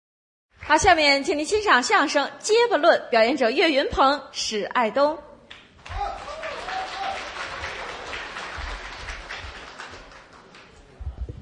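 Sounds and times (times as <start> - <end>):
speech: 0.7 - 5.3
audience applause: 5.8 - 11.0.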